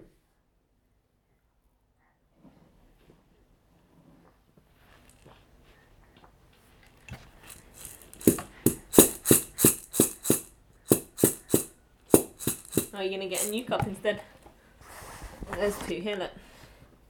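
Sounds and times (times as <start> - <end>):
child banging on a drum: 7.8 - 13.5
speech: 13.0 - 14.4, 15.6 - 16.4.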